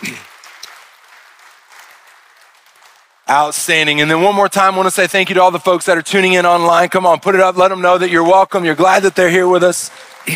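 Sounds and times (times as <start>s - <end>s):
audience applause: 0.0s - 4.5s, 8.7s - 10.3s
speech: 3.3s - 10.3s.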